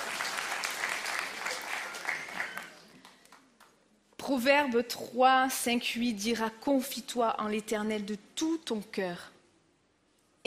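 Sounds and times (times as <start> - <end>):
audience applause: 0.0 - 3.4
speech: 4.3 - 9.4.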